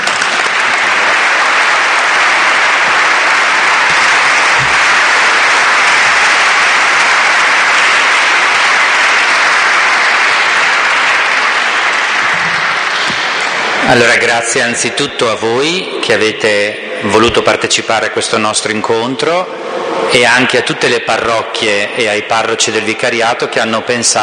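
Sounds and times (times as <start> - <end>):
audience applause: 0.0 - 15.8
speech: 13.9 - 24.2.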